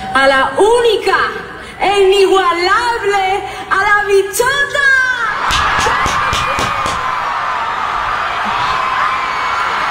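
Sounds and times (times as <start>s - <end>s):
speech: 0.2s - 5.8s
audience applause and cheering: 5.3s - 9.8s.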